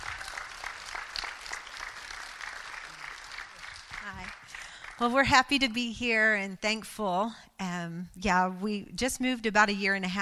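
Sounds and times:
audience clapping to welcome two guest speakers at a youth gathering: 0.0s - 5.4s
speech: 4.1s - 10.2s.

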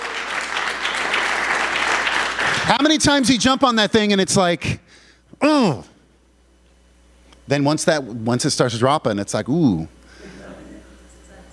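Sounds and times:
audience applause: 0.0s - 3.1s
speech: 2.7s - 5.9s, 7.5s - 10.0s.

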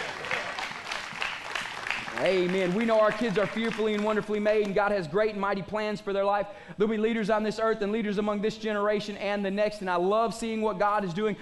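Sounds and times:
audience applauding: 0.0s - 4.7s
speech: 2.2s - 11.3s.

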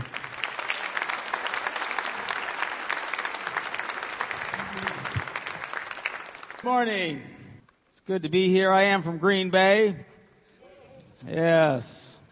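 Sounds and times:
audience applause for speaker: 0.0s - 6.7s
speech: 6.6s - 7.4s, 8.0s - 10.1s, 11.2s - 12.2s.

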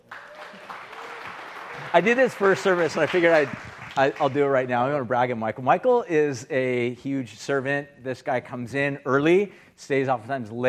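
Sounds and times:
crowd applauding: 0.0s - 4.7s
speech: 1.9s - 10.6s.

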